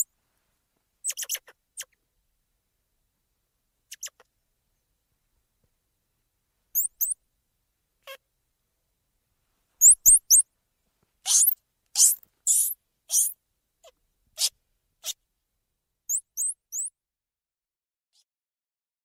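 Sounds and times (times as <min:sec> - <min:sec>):
squirrel monkey calling: 0:01.0 - 0:01.9, 0:06.8 - 0:07.2, 0:09.8 - 0:10.4, 0:11.3 - 0:13.4, 0:14.4 - 0:15.2, 0:16.1 - 0:16.9.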